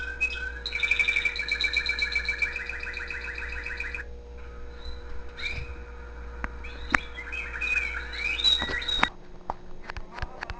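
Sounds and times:
canary trilling: 0:00.0 - 0:06.0, 0:06.6 - 0:09.1
low hum: 0:00.0 - 0:10.5.

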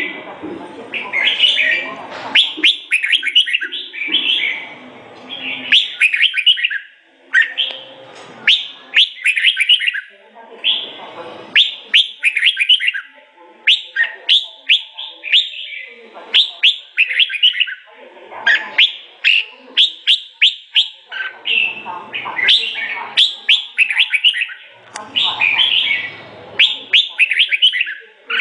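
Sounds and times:
sooty-headed bulbul song of sharp chirps and bubbling phrases: 0:00.9 - 0:17.9, 0:18.5 - 0:28.3.

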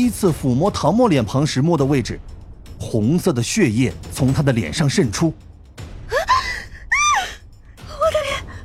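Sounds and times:
speech: 0:00.0 - 0:05.5
young woman gasping: 0:06.1 - 0:08.6
young woman screaming in pain: 0:06.1 - 0:08.6.

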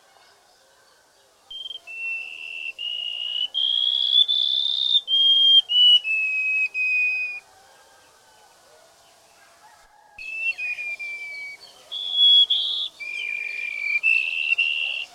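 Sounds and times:
white-rumped shama singing long whistles and varied whistled phrases: 0:01.5 - 0:07.4, 0:10.2 - 0:15.1.

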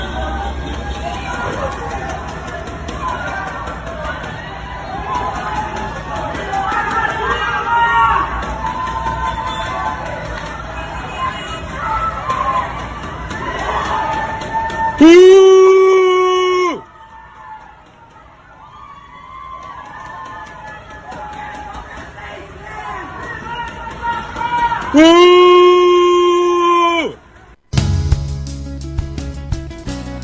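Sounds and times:
crowd of neighbourhood residents jeering and shouting at President Bolsonaro at a bakery in Asa Norte: 0:00.0 - 0:27.2
person giving a loud drawn-out yell sliding downward in pitch: 0:15.0 - 0:16.8, 0:24.9 - 0:27.2.

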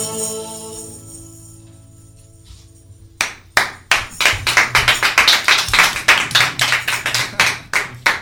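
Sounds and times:
applause from neighbouring studios: 0:03.2 - 0:08.2.

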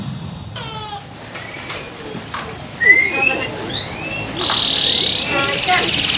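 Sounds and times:
small champion canary singing whistles and buzzy trills: 0:02.8 - 0:06.1.

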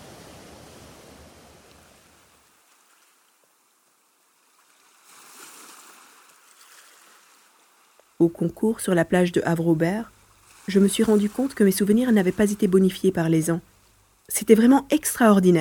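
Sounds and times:
ocean waves rushing around a boat between Île d'Entrée and Havre-Aubert: 0:00.0 - 0:08.1, 0:09.6 - 0:13.2
speech: 0:08.2 - 0:13.7, 0:14.3 - 0:15.6.

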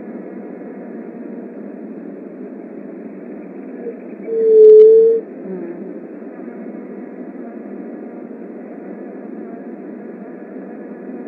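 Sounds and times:
Leptotila dove soft hollow hoot: 0:03.8 - 0:05.3.

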